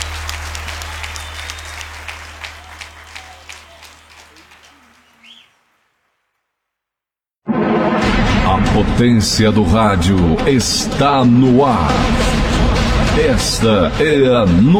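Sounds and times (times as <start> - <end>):
crowd applauding: 0.0 - 6.0
loud burst of sound: 7.4 - 14.6
speech: 8.8 - 12.4, 13.2 - 14.7.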